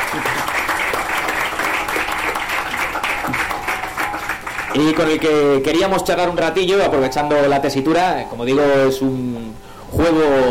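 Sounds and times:
audience applause: 0:00.0 - 0:05.3
speech: 0:00.2 - 0:00.4, 0:04.8 - 0:10.4.

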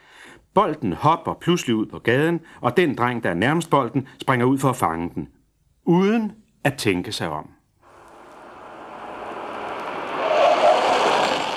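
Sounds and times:
speech: 0:00.6 - 0:07.6
car braking to a sudden stop: 0:07.8 - 0:11.5.

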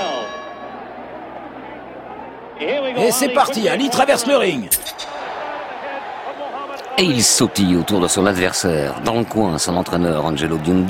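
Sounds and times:
boxing ring bell starting the round: 0:00.0 - 0:00.8
speech: 0:02.6 - 0:05.1, 0:07.0 - 0:10.8.

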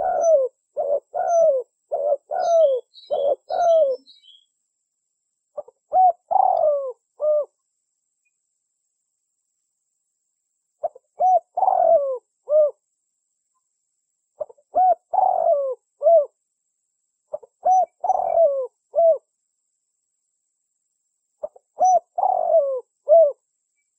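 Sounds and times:
Spotted Dove cooing as a lure call: 0:00.0 - 0:04.4, 0:05.6 - 0:07.6, 0:10.8 - 0:12.8, 0:14.4 - 0:16.4, 0:17.3 - 0:19.3, 0:21.4 - 0:23.4.

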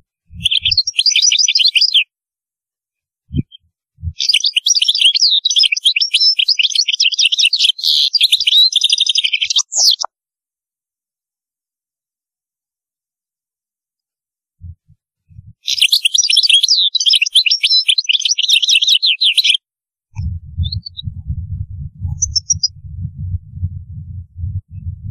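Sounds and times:
European goldfinch twittering song: 0:00.3 - 0:02.1, 0:04.2 - 0:10.1, 0:15.6 - 0:19.6
steady low rumble: 0:03.3 - 0:04.2, 0:14.6 - 0:15.6, 0:20.2 - 0:25.0
low thumps: 0:14.6 - 0:15.6, 0:20.2 - 0:25.0.

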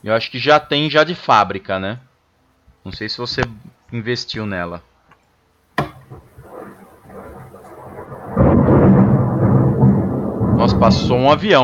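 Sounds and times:
speech: 0:00.0 - 0:02.1, 0:02.8 - 0:04.9, 0:10.7 - 0:11.6
heavy rain downpour: 0:06.0 - 0:11.6
thunder crack and rumble: 0:06.0 - 0:11.6.

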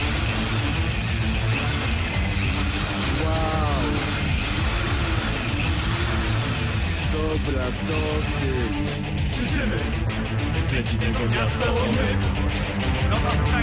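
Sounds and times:
hammer drill running with hammer action engaged: 0:00.0 - 0:10.5
speech: 0:07.6 - 0:13.6.

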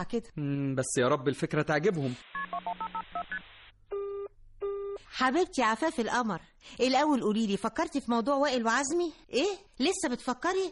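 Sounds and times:
speech: 0:00.0 - 0:03.5, 0:05.2 - 0:10.7
telephone keypad tones dialing a number: 0:02.4 - 0:05.0.

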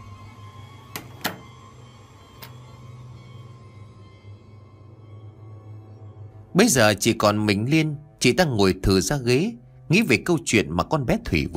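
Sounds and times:
door being closed: 0:00.9 - 0:01.6
speech: 0:06.6 - 0:11.5.

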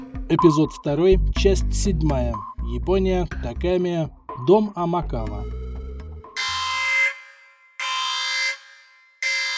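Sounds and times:
speech: 0:00.3 - 0:05.6
harsh warning alarm for a new unregistered signature: 0:06.4 - 0:09.5.

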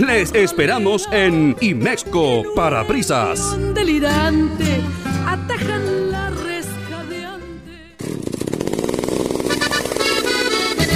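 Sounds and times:
speech: 0:00.0 - 0:05.8
chainsaw engine running at high revs: 0:08.0 - 0:10.9.

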